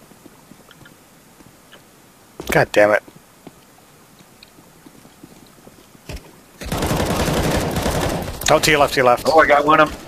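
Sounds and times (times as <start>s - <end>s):
speech: 2.5s - 3.1s, 8.5s - 10.0s
video game shotgun gunfire: 6.6s - 8.7s.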